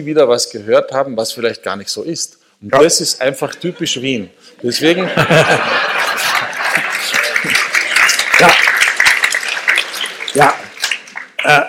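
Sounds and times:
speech: 0:00.0 - 0:06.3, 0:08.4 - 0:08.6
laughter: 0:03.5 - 0:08.6
audience applause: 0:05.2 - 0:11.6.

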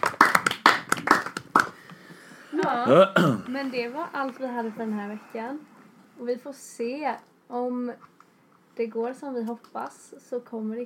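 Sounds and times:
small group clapping for a friend: 0:00.0 - 0:01.9
speech: 0:02.7 - 0:08.1, 0:08.8 - 0:10.8.

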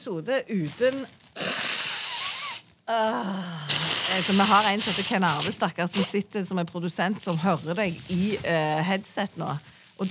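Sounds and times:
speech: 0:00.0 - 0:01.2, 0:02.9 - 0:10.0
nose blowing: 0:01.4 - 0:02.8, 0:03.4 - 0:05.6.

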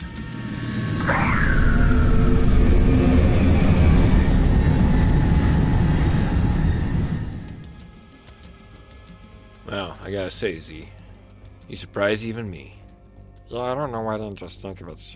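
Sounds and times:
vacuum system running: 0:00.0 - 0:07.8
speech: 0:10.3 - 0:11.0, 0:11.7 - 0:12.8, 0:13.5 - 0:15.1.

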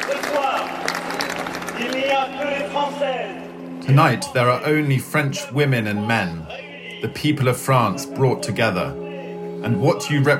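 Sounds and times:
large crowd cheering and applauding: 0:00.0 - 0:05.0
speech: 0:02.2 - 0:09.0, 0:09.6 - 0:10.3.

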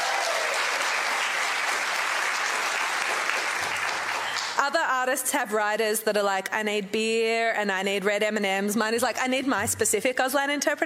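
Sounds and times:
audience applauding: 0:00.0 - 0:04.6
speech: 0:04.6 - 0:10.8.

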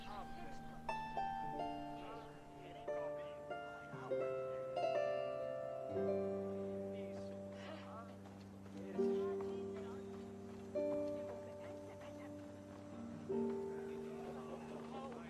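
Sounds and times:
distant music with long held notes in a quiet medieval town: 0:00.0 - 0:15.2
soft chatter murmurs in a quiet medieval town: 0:00.0 - 0:15.2.

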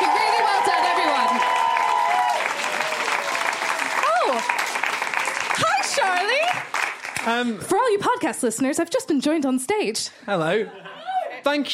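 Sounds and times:
audience applause: 0:00.0 - 0:07.5
speech: 0:07.2 - 0:11.7.

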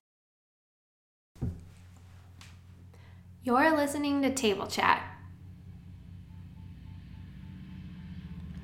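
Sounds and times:
speech: 0:03.5 - 0:05.1
motorcycle: 0:04.8 - 0:08.6.

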